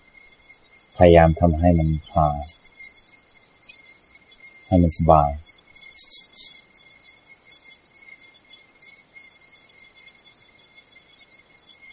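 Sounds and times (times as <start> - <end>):
birds chirping at dawn: 0.0 - 7.1
cicadas trilling at dawn: 0.0 - 11.9
speech: 1.0 - 2.6, 4.7 - 5.4.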